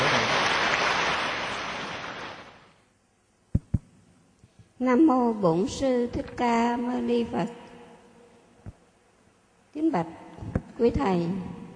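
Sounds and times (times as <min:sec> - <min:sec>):
audience applause: 0:00.0 - 0:02.7
speech: 0:04.8 - 0:07.6, 0:09.8 - 0:10.2, 0:10.8 - 0:11.5.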